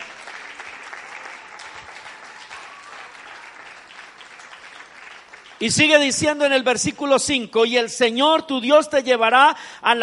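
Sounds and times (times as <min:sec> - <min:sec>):
audience applause: 0:00.0 - 0:06.0
speech: 0:05.6 - 0:10.0.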